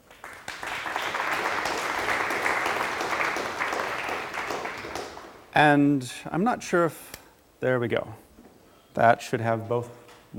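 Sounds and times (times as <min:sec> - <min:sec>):
audience applause welcoming a speaker to a talk: 0:00.0 - 0:05.6
speech: 0:05.6 - 0:08.2, 0:09.0 - 0:10.3.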